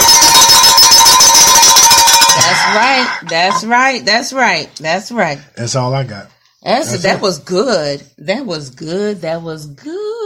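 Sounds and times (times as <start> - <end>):
bell ringing: 0.0 - 3.7
speech: 2.8 - 10.2.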